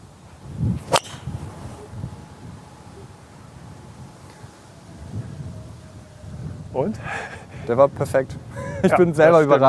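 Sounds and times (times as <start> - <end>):
golf club striking ball off tee: 0.8 - 1.9
speech: 6.8 - 9.6.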